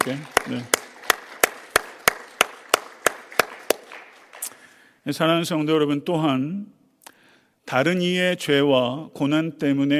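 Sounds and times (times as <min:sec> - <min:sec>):
audience clapping: 0:00.0 - 0:04.9
speech: 0:00.1 - 0:00.8, 0:05.0 - 0:06.8, 0:07.7 - 0:09.9.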